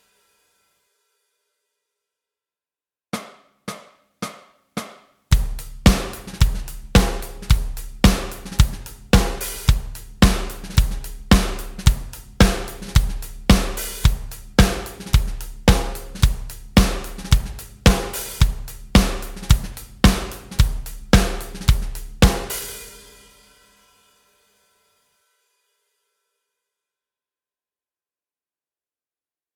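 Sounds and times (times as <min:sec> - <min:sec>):
backing track: 0:05.3 - 0:22.8.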